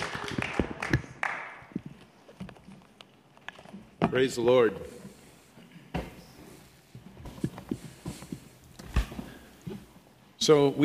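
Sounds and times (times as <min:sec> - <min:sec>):
audience applause: 0:00.0 - 0:01.7
speech: 0:04.1 - 0:05.0, 0:10.5 - 0:10.8.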